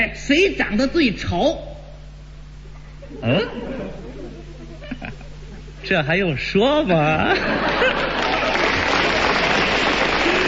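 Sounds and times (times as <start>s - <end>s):
speech: 0.0s - 1.7s, 3.1s - 4.0s, 5.8s - 8.2s
laughter: 2.6s - 5.8s, 7.1s - 10.4s
audience applause: 7.5s - 10.4s.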